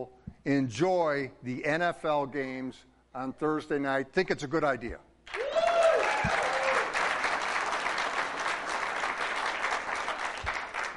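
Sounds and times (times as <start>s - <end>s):
speech: 0.0s - 5.1s
audience applause: 5.3s - 10.9s.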